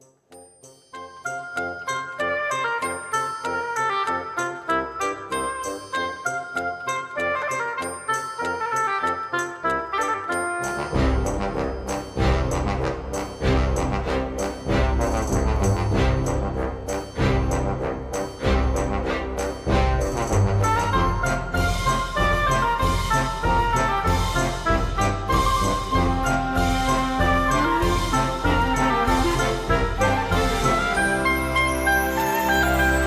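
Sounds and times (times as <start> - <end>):
bright chiming video game melody: 0.4 - 33.0
full band with deep bass and driving drums: 8.5 - 33.0.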